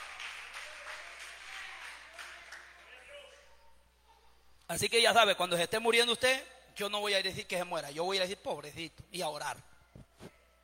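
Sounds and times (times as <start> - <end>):
audience applause: 0.0 - 3.0
speech: 4.7 - 9.7.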